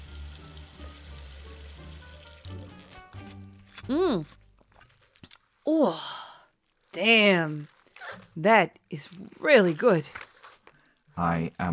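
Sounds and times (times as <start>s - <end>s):
glass being rinsed under tap water: 0.0s - 3.0s
tap water running: 0.0s - 3.2s
speech: 3.9s - 4.4s, 5.7s - 6.2s, 7.0s - 7.8s, 8.4s - 10.3s, 11.2s - 11.7s.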